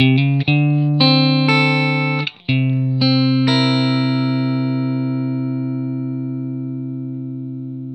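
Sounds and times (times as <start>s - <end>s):
vintage blues guitar: 0.0s - 7.9s.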